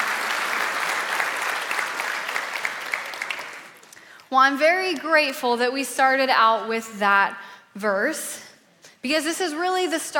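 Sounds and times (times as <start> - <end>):
audience applause: 0.0 - 3.9
speech: 4.3 - 10.1.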